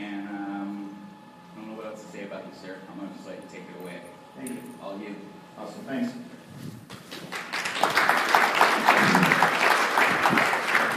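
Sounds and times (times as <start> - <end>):
speech: 2.4 - 6.9
audience clapping: 7.1 - 10.9.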